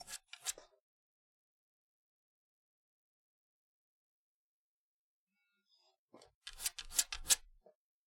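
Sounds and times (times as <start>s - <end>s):
dog scratching door: 6.5s - 7.4s.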